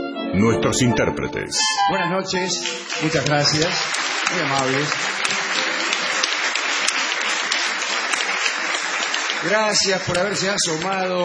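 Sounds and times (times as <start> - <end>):
speech: 0.3 - 5.3, 9.4 - 11.2
audience ovation: 2.5 - 11.2.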